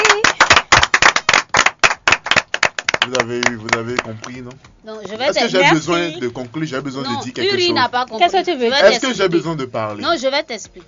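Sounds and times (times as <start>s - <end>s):
audience clapping: 0.0s - 4.6s
speech: 3.1s - 10.8s.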